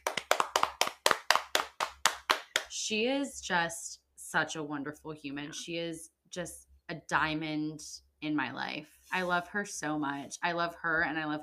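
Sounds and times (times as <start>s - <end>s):
hand claps: 0.0s - 2.8s
speech: 2.9s - 11.4s.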